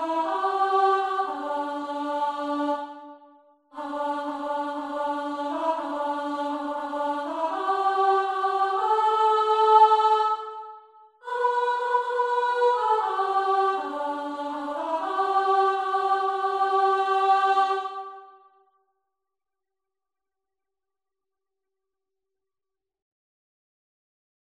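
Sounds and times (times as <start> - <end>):
tenor singing: 0.0 - 18.3.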